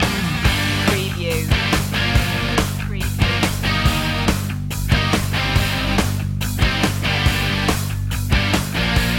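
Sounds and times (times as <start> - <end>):
hair metal loop: 0.0 - 9.0.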